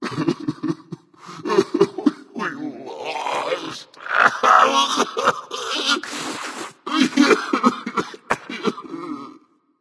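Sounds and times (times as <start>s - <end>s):
person crying nonverbally: 0.1s - 2.4s, 4.3s - 6.1s, 6.9s - 9.3s.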